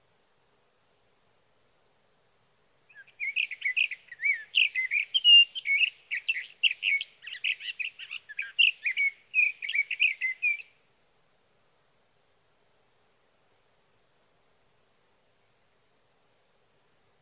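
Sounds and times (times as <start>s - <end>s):
sage thrasher warbling song: 2.9s - 10.7s.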